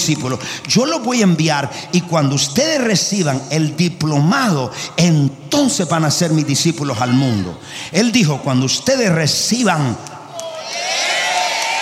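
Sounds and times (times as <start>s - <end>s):
speech: 0.0s - 10.1s
audience cheering: 10.3s - 11.8s
audience applause: 10.5s - 11.8s.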